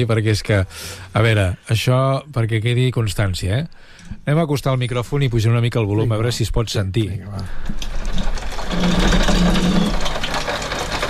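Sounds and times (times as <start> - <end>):
speech: 0.0 - 9.8
heavy rain on a window in Barcelona: 7.6 - 11.0.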